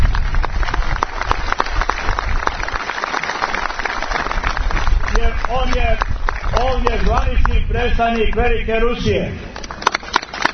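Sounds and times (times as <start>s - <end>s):
audience applause greeting an official guest from the Russian embassy: 0.0s - 7.5s, 9.6s - 10.5s
speech: 7.3s - 9.6s.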